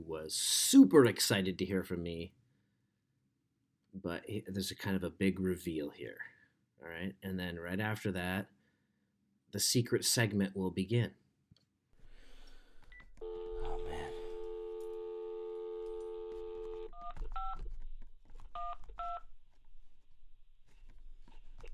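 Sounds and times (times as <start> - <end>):
speech: 0.0 - 2.4, 3.9 - 8.6, 9.5 - 11.2
steady humming phone tone: 13.2 - 17.6.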